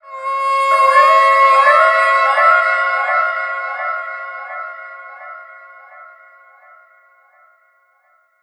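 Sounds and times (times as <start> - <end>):
violin effects: 0.2 - 6.0.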